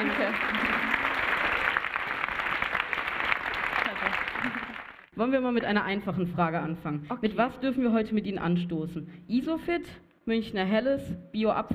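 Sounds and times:
speech: 0.0 - 0.8, 5.2 - 11.7
audience applause: 0.0 - 5.1.

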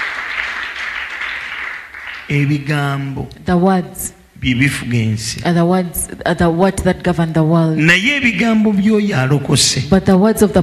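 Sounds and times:
audience clapping: 0.0 - 2.7
speech: 2.3 - 10.6.

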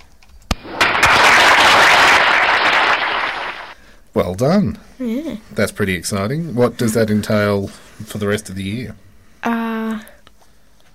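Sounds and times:
clapping from a soundboard button: 0.8 - 3.8
speech: 4.2 - 9.0.

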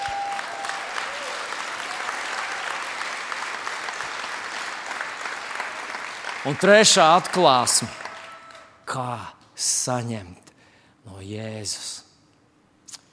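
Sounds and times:
audience applause: 0.0 - 8.8
speech: 6.4 - 8.0, 8.9 - 10.4, 11.1 - 12.0.

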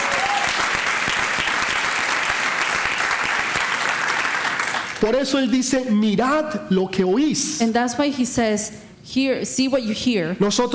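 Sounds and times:
audience applause: 0.0 - 5.0
speech: 5.0 - 10.7.

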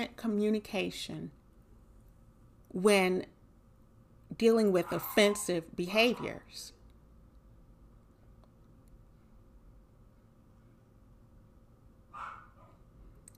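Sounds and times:
speech: 0.0 - 1.4, 2.7 - 3.4, 4.3 - 6.8
puppy barking: 4.8 - 6.4, 12.1 - 12.8.

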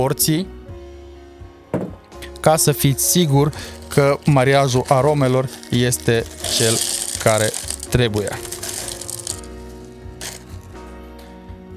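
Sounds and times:
speech: 0.0 - 0.6, 2.4 - 8.5
nugget ice added to a drink: 2.3 - 11.0.

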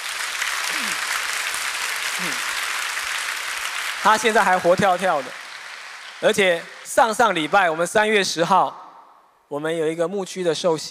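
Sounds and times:
audience applause: 0.0 - 8.2
speech: 2.2 - 2.5, 4.0 - 5.4, 6.2 - 8.8, 9.5 - 10.8.

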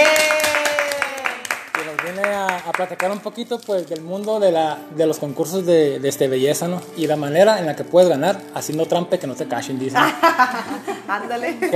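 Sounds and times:
applause for the guest: 0.0 - 3.6
speech: 2.8 - 11.7
laughter: 10.0 - 11.7.

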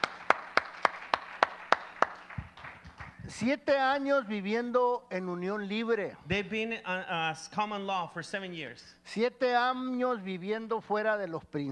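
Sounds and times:
audience clapping in unison: 0.0 - 3.3
speech: 3.3 - 11.7.

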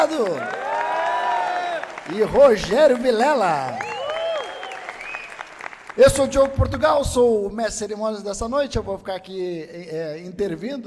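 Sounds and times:
speech: 0.0 - 0.6, 2.1 - 3.9, 6.0 - 10.8
audience applause: 0.0 - 7.1.

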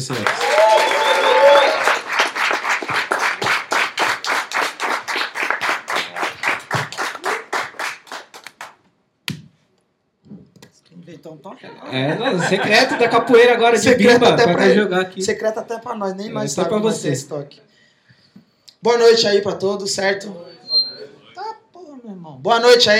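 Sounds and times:
speech: 0.0 - 1.0, 11.6 - 17.7, 18.8 - 20.6, 22.4 - 22.9
audience applause: 0.0 - 8.8
laughter: 11.7 - 13.7.

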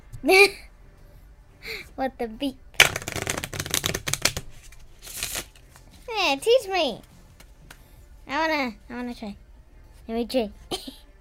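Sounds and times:
speech: 0.2 - 0.7, 1.6 - 2.6, 6.2 - 7.1, 8.3 - 9.4, 10.1 - 11.0
deck of cards being shuffled: 2.8 - 6.1.

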